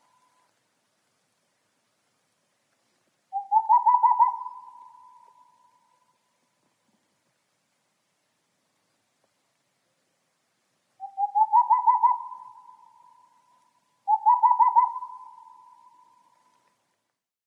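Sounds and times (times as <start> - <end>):
boreal owl calling: 0.0 - 0.5, 3.3 - 6.4, 11.0 - 16.8.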